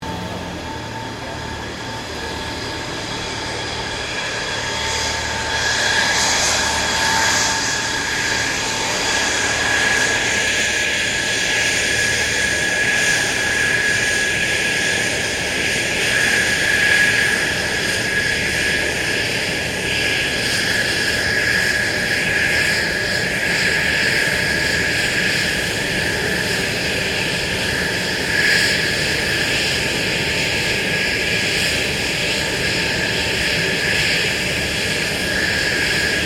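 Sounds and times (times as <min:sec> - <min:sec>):
F16 Falcon aircraft taxiing and shutting down: 0:00.0 - 0:36.2.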